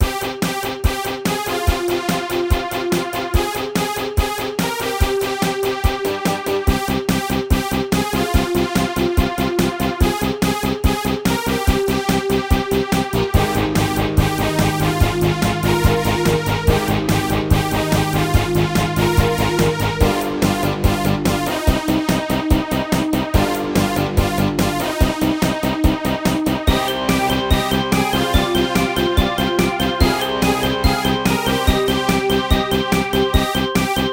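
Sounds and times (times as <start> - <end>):
techno remix: 0.0 - 34.1.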